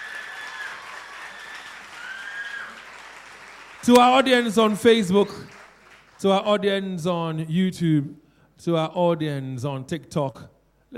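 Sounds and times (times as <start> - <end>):
studio audience applause for contest show contestants: 0.0 - 6.2
speech: 3.8 - 5.6, 6.2 - 10.9.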